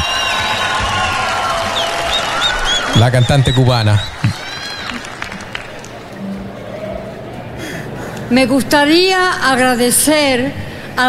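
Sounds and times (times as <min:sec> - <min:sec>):
audience whoops and whistles at an awards ceremony: 0:00.0 - 0:05.0
audience clapping at an awards ceremony for a Cuban singer: 0:00.0 - 0:06.2
speech: 0:03.0 - 0:04.4, 0:08.3 - 0:11.0.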